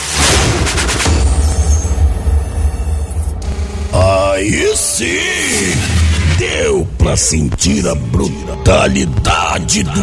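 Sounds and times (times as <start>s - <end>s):
cannon fire: 0.2s - 4.0s
speech: 4.4s - 5.6s, 6.4s - 10.0s.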